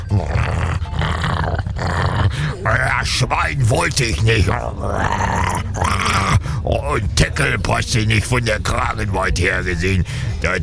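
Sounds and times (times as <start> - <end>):
German shepherd dog growling: 0.0 - 2.8, 4.5 - 6.4
speech: 0.1 - 0.5, 2.6 - 10.6.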